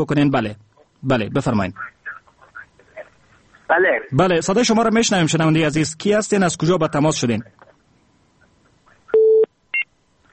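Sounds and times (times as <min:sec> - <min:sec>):
speech: 0:00.0 - 0:02.0, 0:03.7 - 0:07.6
telephone busy tone after a caller's line drops: 0:09.1 - 0:09.9.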